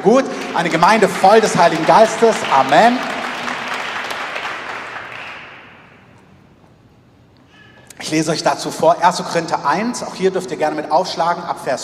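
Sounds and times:
speech: 0.0 - 3.1, 8.1 - 11.8
audience applause: 0.0 - 5.8.

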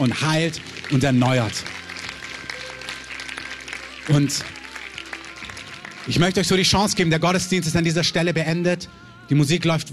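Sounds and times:
speech: 0.0 - 1.8, 4.1 - 4.6, 6.1 - 9.9
audience applause: 0.0 - 6.9.

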